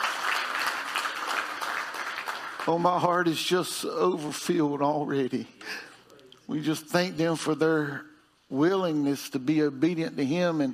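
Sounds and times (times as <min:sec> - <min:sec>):
audience hand clapping: 0:00.0 - 0:03.4
speech: 0:02.6 - 0:05.9, 0:06.5 - 0:10.7.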